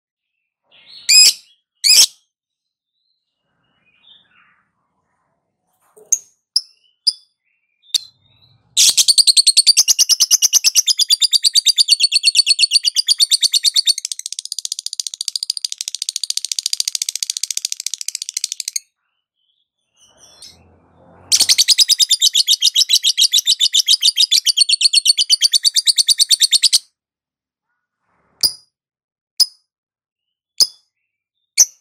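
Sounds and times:
lovebird shrill calls and chirps: 1.1 - 2.1, 8.8 - 18.8, 21.3 - 26.8.

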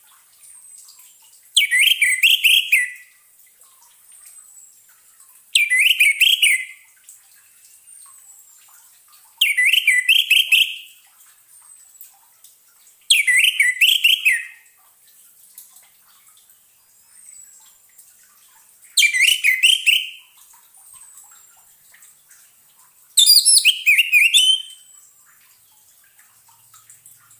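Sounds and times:
Orange-headed thrush song: 1.6 - 3.1, 5.6 - 6.8, 9.4 - 10.9, 13.1 - 14.6, 19.0 - 20.2, 23.2 - 25.0.

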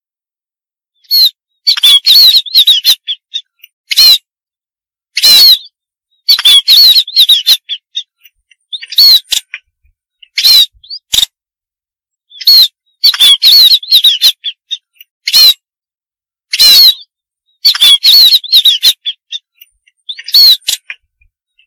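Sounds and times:
munia harsh buzzy calls and thin wavering whistles: 1.0 - 4.3, 5.2 - 9.6, 12.3 - 15.6, 16.5 - 20.9.

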